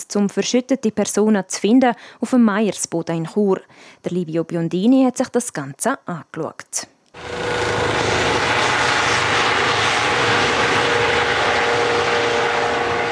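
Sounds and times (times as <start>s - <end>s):
speech: 0.0s - 7.7s
army helicopter landing: 7.2s - 13.1s.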